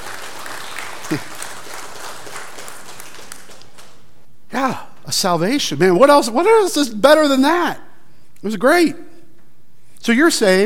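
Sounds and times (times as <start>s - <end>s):
crowd clapping: 0.0s - 4.2s
speech: 1.1s - 1.4s, 4.7s - 7.8s, 8.4s - 9.1s, 10.0s - 10.6s.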